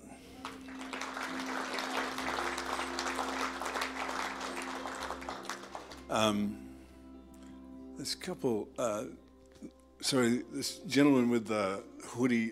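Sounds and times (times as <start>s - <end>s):
audience clapping: 0.2s - 6.2s
speech: 6.1s - 6.6s, 8.0s - 12.5s.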